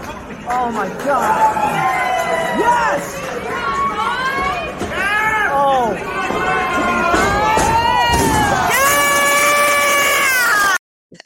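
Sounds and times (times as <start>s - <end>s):
speech: 0.7s - 1.9s
crowd cheering and screaming: 1.2s - 10.8s.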